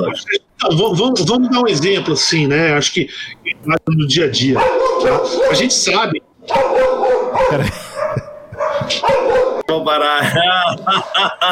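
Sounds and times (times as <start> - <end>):
laughter: 0.0 - 1.6, 7.4 - 9.4, 10.0 - 11.4
speech: 0.0 - 7.9, 8.9 - 11.4
pet dog barking, yelping and howling at home: 1.1 - 2.4, 4.4 - 9.7.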